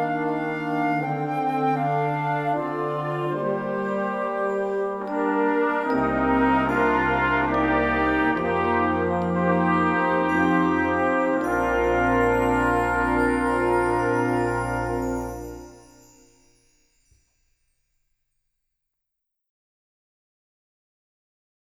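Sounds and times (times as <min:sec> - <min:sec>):
wind band playing: 0:00.0 - 0:16.2.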